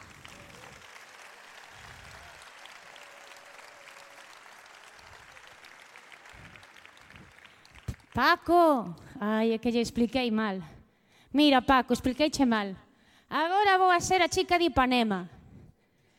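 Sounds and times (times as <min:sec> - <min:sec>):
audience applause for a murga group: 0:00.0 - 0:08.2
speech: 0:08.2 - 0:10.7, 0:11.3 - 0:15.4.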